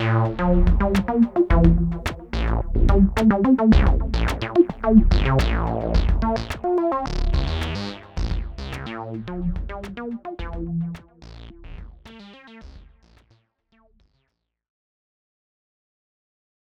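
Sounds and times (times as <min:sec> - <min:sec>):
electro dance music: 0:00.0 - 0:11.0.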